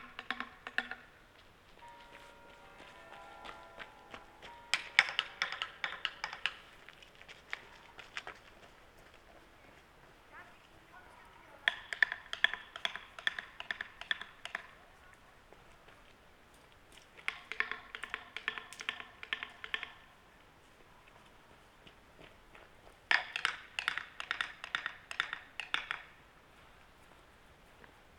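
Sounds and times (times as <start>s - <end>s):
small wooden sticks knocking on small wooden sticks: 0.0s - 1.1s, 1.8s - 7.8s, 11.6s - 14.7s, 17.2s - 20.0s, 23.1s - 26.1s.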